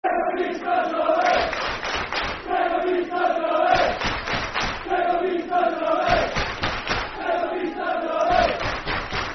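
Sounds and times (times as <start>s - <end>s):
football crowd chanting: 0.0s - 9.3s.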